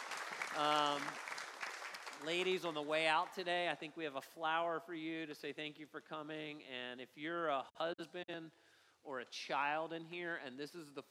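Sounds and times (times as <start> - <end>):
audience applause: 0.0 - 3.0
speech: 0.6 - 1.3, 2.2 - 11.0.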